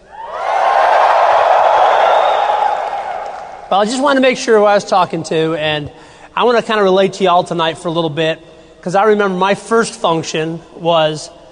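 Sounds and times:
audience yelling: 0:00.0 - 0:03.9
speech: 0:03.7 - 0:11.4.

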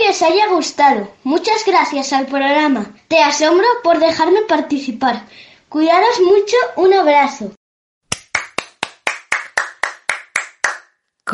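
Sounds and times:
speech: 0:00.1 - 0:07.6
single pair of hands clapping: 0:08.1 - 0:10.9.

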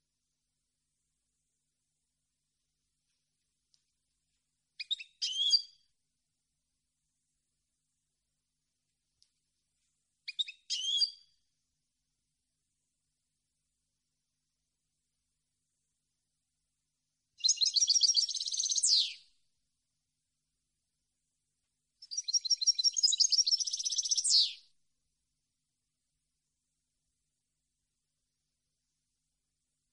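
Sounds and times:
European goldfinch song: 0:04.8 - 0:05.9, 0:10.3 - 0:11.4, 0:17.4 - 0:19.3, 0:22.0 - 0:24.7.

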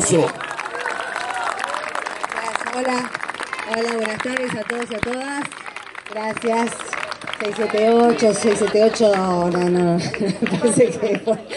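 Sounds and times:
audience applause: 0:00.0 - 0:11.2
speech: 0:00.1 - 0:00.4, 0:02.8 - 0:11.5
laughter: 0:07.8 - 0:11.5.

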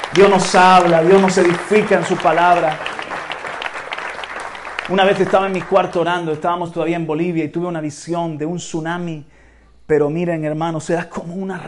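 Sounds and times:
audience applauding: 0:00.0 - 0:06.8
speech: 0:00.2 - 0:03.0, 0:04.9 - 0:11.6.

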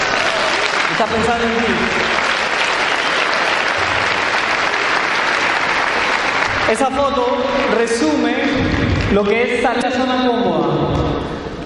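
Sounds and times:
applause: 0:00.0 - 0:09.1
speech: 0:01.0 - 0:02.2, 0:06.7 - 0:11.0.

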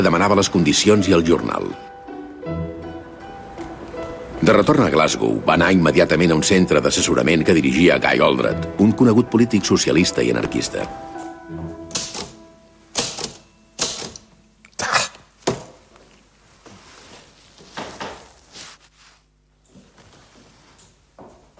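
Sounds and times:
speech: 0:00.0 - 0:02.6, 0:04.4 - 0:11.2
typewriter typing: 0:11.9 - 0:12.4, 0:13.0 - 0:14.2.

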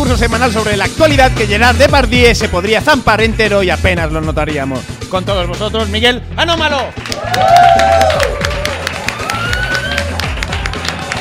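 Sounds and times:
speech: 0:00.1 - 0:08.4
audience applause: 0:07.1 - 0:11.1
audience whistles and cheers: 0:07.2 - 0:11.1.

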